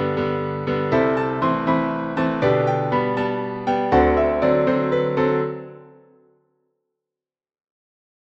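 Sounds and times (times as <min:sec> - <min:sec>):
piano: 0:00.0 - 0:06.5.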